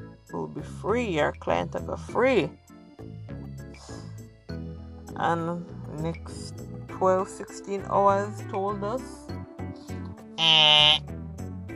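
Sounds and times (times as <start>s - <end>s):
speech: 0.3s - 2.7s, 5.2s - 9.3s, 10.4s - 11.1s
buzzer: 10.4s - 11.0s.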